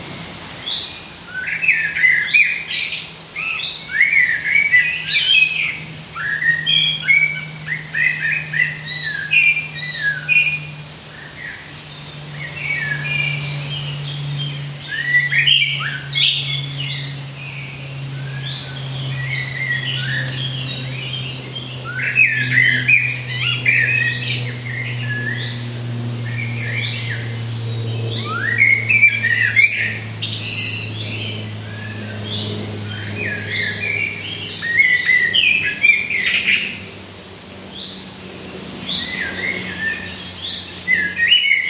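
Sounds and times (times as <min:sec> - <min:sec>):
birds singing in the woods: 0:00.0 - 0:41.6
low steady hum: 0:00.0 - 0:41.6.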